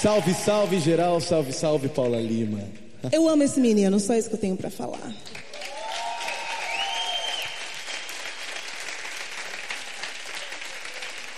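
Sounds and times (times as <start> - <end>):
audience applause: 0.0 - 2.6, 5.4 - 11.3
speech: 0.0 - 5.4.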